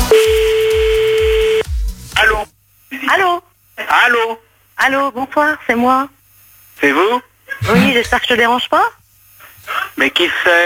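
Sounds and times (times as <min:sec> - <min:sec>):
steady telephone line tone: 0:00.1 - 0:01.6
speech: 0:04.1 - 0:06.2, 0:06.8 - 0:09.0, 0:09.6 - 0:10.6.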